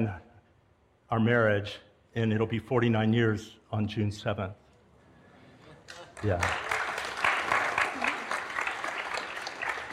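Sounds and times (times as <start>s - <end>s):
speech: 0.0s - 0.2s, 1.1s - 4.6s, 5.9s - 6.7s
audience applause: 5.9s - 9.9s.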